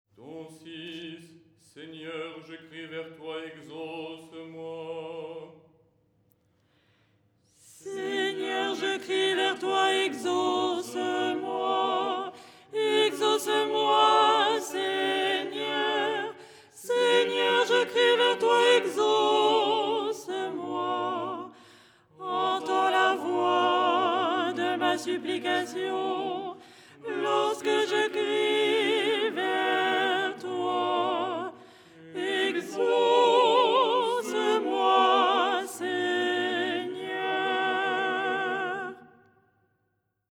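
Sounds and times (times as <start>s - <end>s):
soprano singing: 7.8s - 21.6s, 22.2s - 39.1s.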